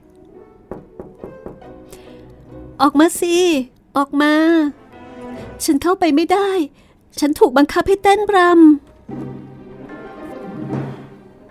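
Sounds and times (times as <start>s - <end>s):
fingertip taps on a window: 0.7s - 1.7s
speech: 2.8s - 4.8s, 5.6s - 9.3s.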